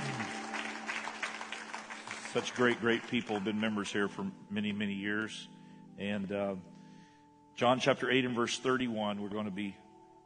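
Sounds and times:
audience applause: 0:00.0 - 0:03.7
speech: 0:02.3 - 0:06.7, 0:07.6 - 0:09.8.

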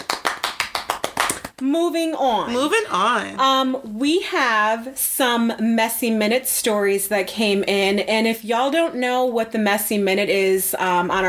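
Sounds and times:
hand claps: 0:00.0 - 0:01.7
speech: 0:01.6 - 0:11.2.

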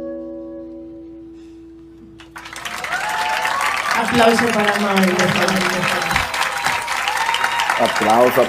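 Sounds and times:
applause: 0:02.2 - 0:08.4.

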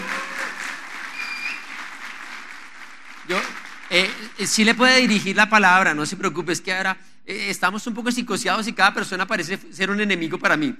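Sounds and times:
audience applause: 0:00.0 - 0:04.8
speech: 0:03.3 - 0:10.7.

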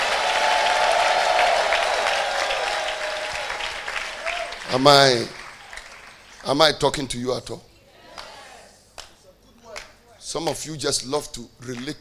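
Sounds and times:
audience shouting: 0:00.0 - 0:05.0
audience clapping: 0:00.0 - 0:06.8, 0:09.0 - 0:10.6
speech: 0:04.7 - 0:05.4, 0:06.4 - 0:07.7, 0:10.3 - 0:11.9.

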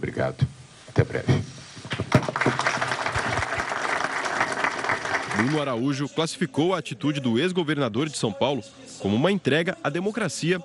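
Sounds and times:
speech: 0:00.0 - 0:01.5, 0:05.4 - 0:10.6
supporters applauding: 0:02.2 - 0:05.8.

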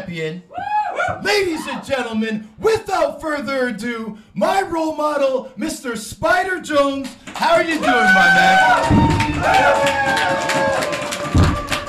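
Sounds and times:
speech: 0:00.0 - 0:11.0
live audience cheering: 0:00.5 - 0:02.0, 0:07.4 - 0:11.8.

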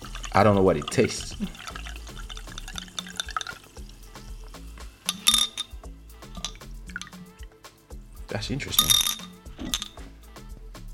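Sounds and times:
pouring a drink: 0:00.0 - 0:07.3
speech: 0:00.4 - 0:01.7, 0:08.3 - 0:09.2.

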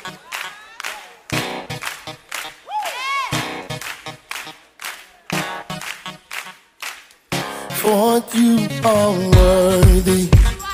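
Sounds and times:
hands clapping: 0:00.0 - 0:08.0
speech: 0:07.9 - 0:10.4.

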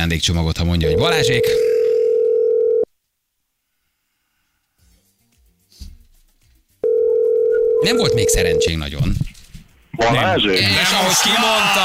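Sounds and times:
speech: 0:00.0 - 0:01.8, 0:07.8 - 0:09.4, 0:10.0 - 0:11.8
telephone line tone while calling a radio listener: 0:00.8 - 0:02.9, 0:06.8 - 0:08.8.

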